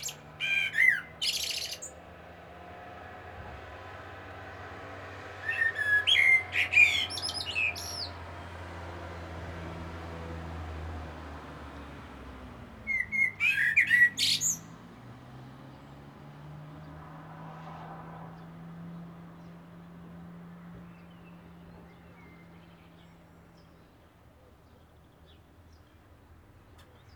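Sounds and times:
common blackbird singing: 0.0s - 2.1s, 5.4s - 8.2s, 12.8s - 14.8s, 20.7s - 26.0s.

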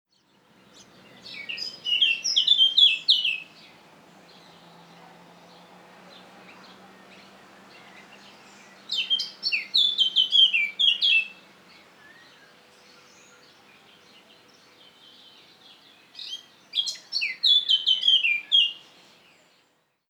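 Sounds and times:
Eurasian blackcap song of fluty whistles: 1.3s - 3.5s, 9.0s - 11.3s, 16.8s - 18.8s.

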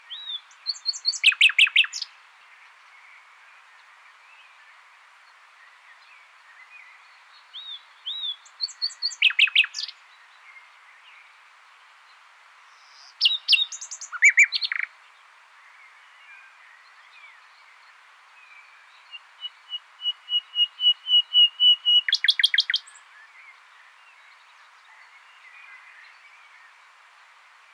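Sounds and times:
common nightingale singing: 0.0s - 2.1s, 7.5s - 10.0s, 12.8s - 14.9s, 18.5s - 26.8s
faint other birdsong: 0.0s - 27.7s.

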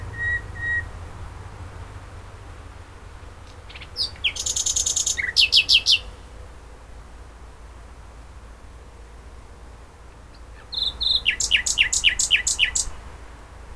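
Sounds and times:
common nightingale song, Luscinia megarhynchos: 0.0s - 1.2s, 3.3s - 6.4s, 10.1s - 13.1s.

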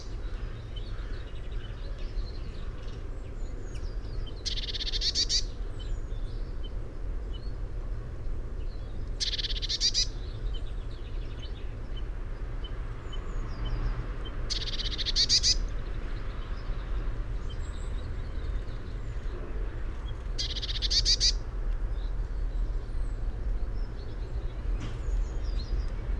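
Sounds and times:
low continuous rumble: 0.0s - 26.1s
Eurasian blue tit scolding churr: 14.5s - 15.7s, 20.4s - 21.4s.

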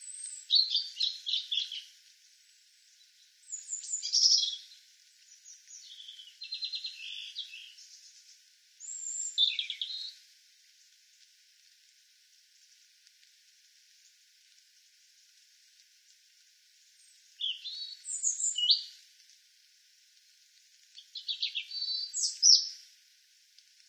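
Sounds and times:
European robin Erithacus rubecula singing high tinkling phrases: 0.0s - 10.2s, 17.0s - 19.0s, 21.0s - 22.8s.

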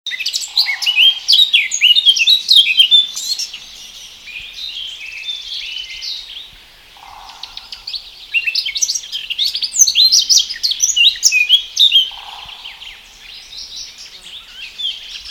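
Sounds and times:
Eurasian blackcap warbling: 0.2s - 4.0s, 7.0s - 13.3s.

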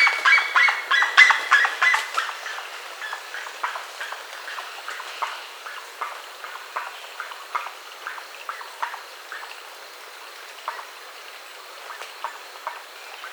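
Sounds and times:
bird chirping: 0.0s - 5.8s
background hiss: 0.0s - 13.3s.

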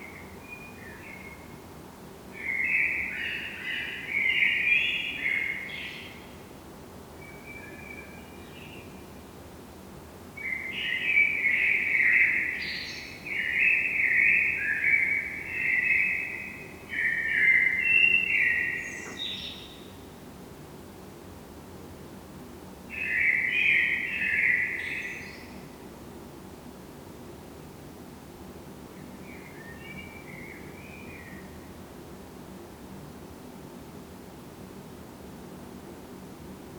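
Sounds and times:
Eurasian blackbird song: 2.4s - 6.3s, 10.4s - 20.0s, 22.9s - 25.6s, 29.0s - 31.6s.

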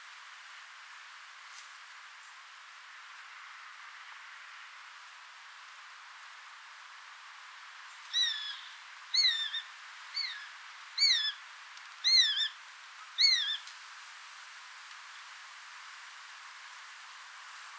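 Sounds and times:
Eurasian jay Garrulus glandarius calls: 8.2s - 11.4s, 13.2s - 13.6s.

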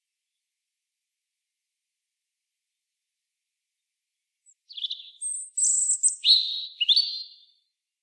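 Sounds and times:
European robin singing: 4.5s - 7.7s.

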